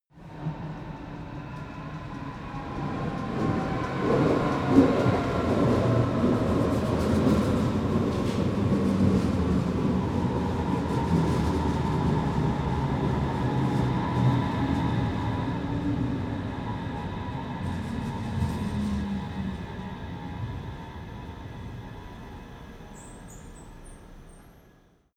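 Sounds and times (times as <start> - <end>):
train arriving at underground station: 0.2 - 25.1.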